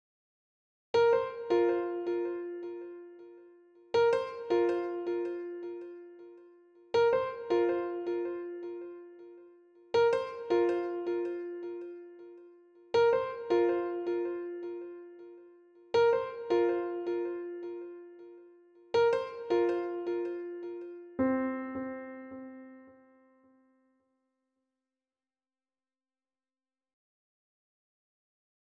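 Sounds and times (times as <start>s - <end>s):
piano: 1.0s - 23.8s.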